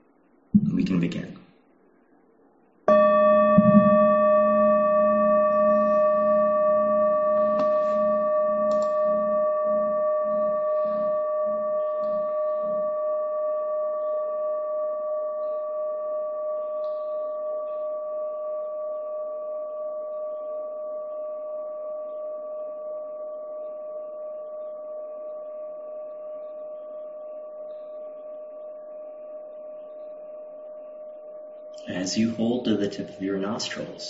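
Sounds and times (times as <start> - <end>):
speech: 0.6 - 1.4, 32.1 - 34.0
meditation bell ringing: 2.9 - 23.5.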